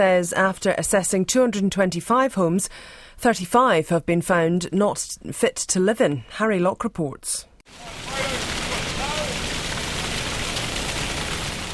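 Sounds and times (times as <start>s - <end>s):
speech: 0.0s - 8.5s
water pumped out of an underwater garage into road drains: 7.7s - 11.7s.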